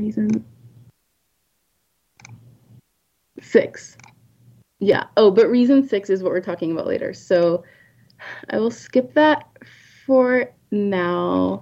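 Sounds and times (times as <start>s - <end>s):
speech: 0.0s - 0.5s, 3.4s - 4.1s, 4.8s - 11.5s
faint clicking through slides on a computer: 2.2s - 2.8s, 3.8s - 4.6s.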